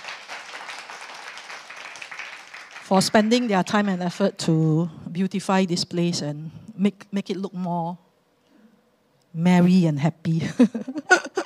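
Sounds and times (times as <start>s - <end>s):
audience applause for a volunteer group: 0.0s - 3.4s
speech: 2.9s - 8.0s, 9.3s - 11.2s.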